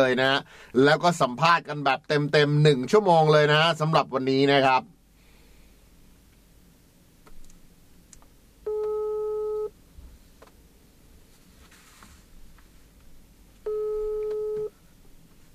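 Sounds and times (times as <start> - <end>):
speech: 0.0 - 5.0
telephone call tone: 8.7 - 9.7, 13.6 - 14.7.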